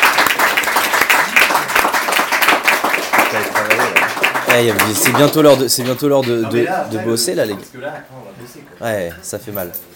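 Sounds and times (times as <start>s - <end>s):
audience clapping for a musician after a breakfast concert: 0.0s - 6.6s
speech: 4.5s - 9.9s.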